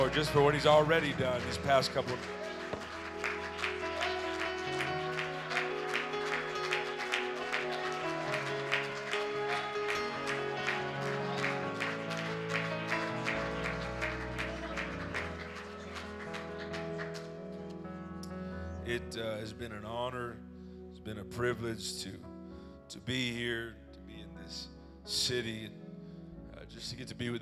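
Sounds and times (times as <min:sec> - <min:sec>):
church congregation clapping in worship: 0:00.0 - 0:18.4
music during a worship service: 0:00.0 - 0:27.4
speech: 0:00.1 - 0:02.6, 0:21.3 - 0:22.3, 0:23.1 - 0:23.8, 0:24.5 - 0:25.8, 0:26.8 - 0:27.4.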